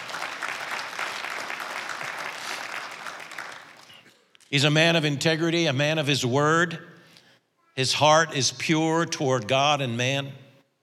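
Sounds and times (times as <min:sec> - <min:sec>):
audience clapping: 0:00.0 - 0:04.1
speech: 0:04.5 - 0:06.9, 0:07.8 - 0:10.4.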